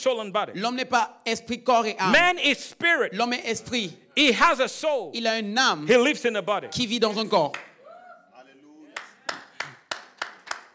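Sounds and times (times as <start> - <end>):
speech: 0.0 - 7.7
group clapping in unison: 7.4 - 7.9, 8.9 - 10.7.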